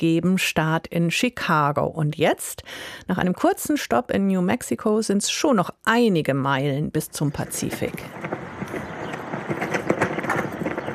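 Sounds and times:
speech: 0:00.0 - 0:08.4
US flag flapping in the wind in the Mojave Desert, California: 0:07.4 - 0:10.9.

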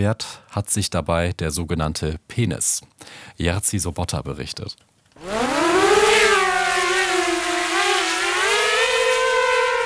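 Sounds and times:
speech: 0:00.0 - 0:05.5
combat drone engine buzzing overhead: 0:05.2 - 0:09.8.

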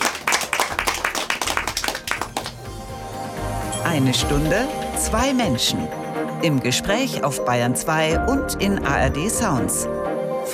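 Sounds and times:
audience applause: 0:00.0 - 0:02.7
speech: 0:03.9 - 0:10.0.

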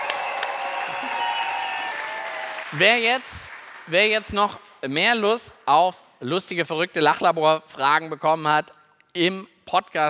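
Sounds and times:
audience applause: 0:00.0 - 0:04.2
speech: 0:02.7 - 0:10.0.

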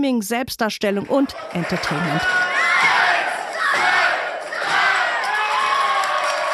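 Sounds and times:
speech: 0:00.0 - 0:02.9
crowd cheering and yelling: 0:01.2 - 0:06.5
large crowd at a wrestling match counting in unison: 0:01.3 - 0:05.7.

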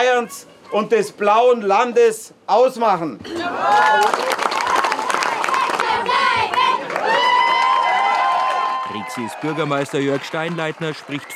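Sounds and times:
speech: 0:00.2 - 0:04.6, 0:09.0 - 0:11.3
crowd noise at a protest march: 0:03.2 - 0:11.3
scattered clapping: 0:03.7 - 0:11.3
children shouting and chanting at a protest march: 0:04.7 - 0:07.0.

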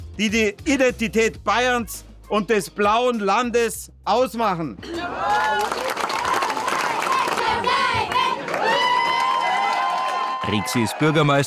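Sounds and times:
speech: 0:00.2 - 0:05.9, 0:10.5 - 0:11.4
crowd cheering: 0:04.8 - 0:11.4
children chanting slogans at a protest march in Bavaria: 0:06.3 - 0:08.6.

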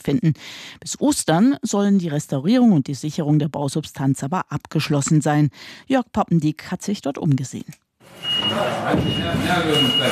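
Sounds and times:
speech: 0:00.0 - 0:10.1
forklift reversing beeps on a construction site: 0:08.2 - 0:10.1.

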